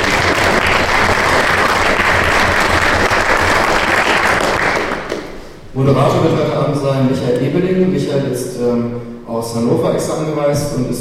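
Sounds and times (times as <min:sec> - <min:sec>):
audience applause: 0:00.0 - 0:05.4
speech: 0:05.8 - 0:10.9.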